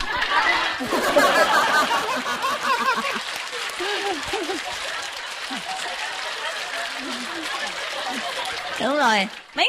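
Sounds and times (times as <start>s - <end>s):
laughter: 0.0s - 9.5s
audience applause: 0.0s - 9.6s
murmuring voices: 3.0s - 9.4s
speech: 9.0s - 9.6s.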